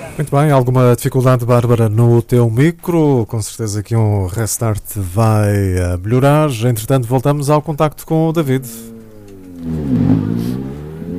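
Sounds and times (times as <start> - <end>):
speech: 0.2 - 9.0, 9.6 - 10.5
rally car engines roaring on arrival at a stage in Santana, Madeira: 8.1 - 11.1.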